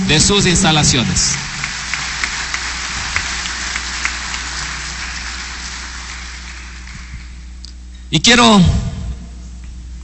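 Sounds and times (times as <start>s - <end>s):
audience applause: 0.0s - 7.5s
speech: 0.1s - 1.5s, 8.1s - 8.9s.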